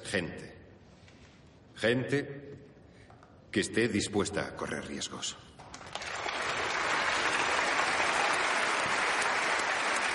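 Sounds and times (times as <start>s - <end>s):
speech: 0.1s - 0.4s, 1.8s - 2.7s, 3.5s - 5.5s
audience applauding in auditorium: 5.7s - 10.1s.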